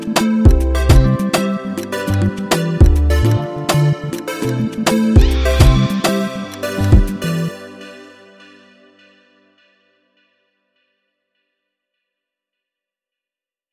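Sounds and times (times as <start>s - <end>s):
music beat: 0.0s - 9.1s.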